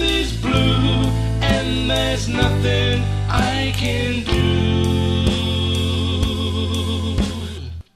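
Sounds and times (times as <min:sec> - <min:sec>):
male vocals: 0:00.0 - 0:07.8.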